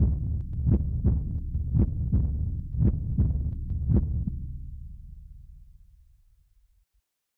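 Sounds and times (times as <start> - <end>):
heartbeat: 0.0 - 4.3.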